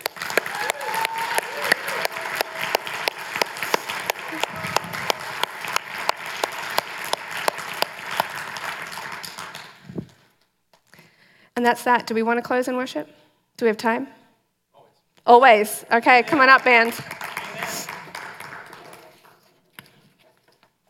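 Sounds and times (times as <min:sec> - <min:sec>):
audience clapping: 0:00.0 - 0:10.4, 0:16.1 - 0:19.6
speech: 0:11.6 - 0:14.2, 0:15.3 - 0:17.1.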